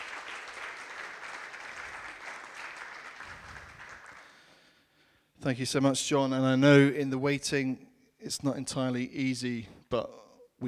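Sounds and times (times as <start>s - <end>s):
audience applause: 0.0s - 4.5s
speech: 5.4s - 10.6s.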